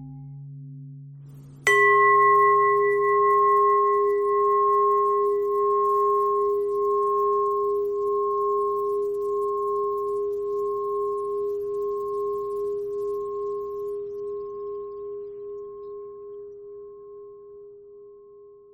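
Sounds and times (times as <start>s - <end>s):
pentatonic bell melody: 1.6s - 16.4s.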